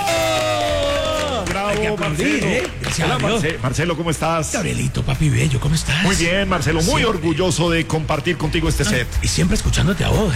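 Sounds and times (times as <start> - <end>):
cheering: 0.0 - 3.3
applause: 0.0 - 3.9
speech: 1.7 - 10.3.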